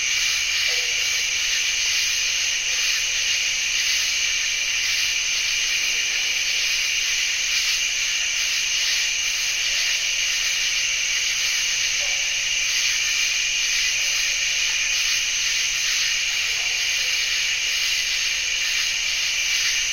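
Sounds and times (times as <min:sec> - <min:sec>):
chorus of bird-voiced treefrogs in a cypress swamp: 0:00.0 - 0:19.9.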